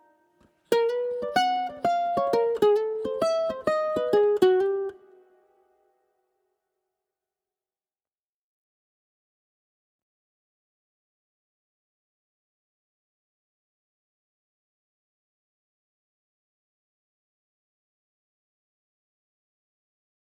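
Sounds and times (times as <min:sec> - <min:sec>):
ukulele: 0:00.0 - 0:05.9.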